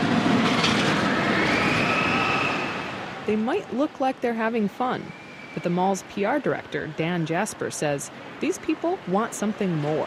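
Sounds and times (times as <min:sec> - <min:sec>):
roller coaster rumbling through a mall amusement park: 0:00.0 - 0:03.3
kids screaming on roller coasters: 0:00.9 - 0:03.2
speech: 0:03.3 - 0:10.0.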